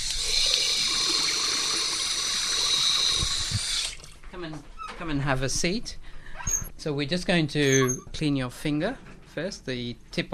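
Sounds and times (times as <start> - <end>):
tap water running as hands are washed before a finger-prick blood test: 0.0 - 4.3
speech: 4.4 - 6.0, 6.8 - 10.3.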